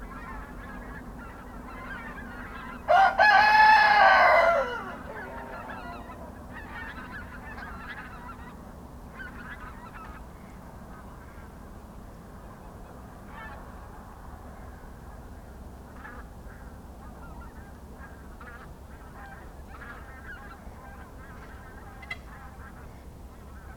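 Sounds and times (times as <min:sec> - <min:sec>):
rooster crowing in a pen at a small farmhouse in Kawcze, Poland: 0:02.9 - 0:06.4.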